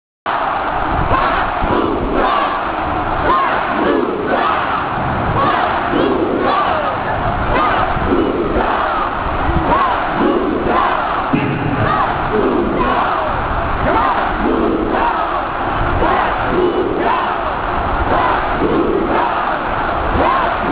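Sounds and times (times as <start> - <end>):
chanting: 0.3 - 20.7.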